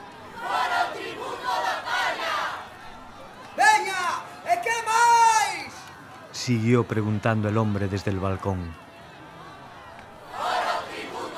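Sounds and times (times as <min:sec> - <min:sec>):
angry crowd shouting in unison: 0:00.0 - 0:06.3, 0:08.7 - 0:11.3
speech: 0:06.5 - 0:08.8.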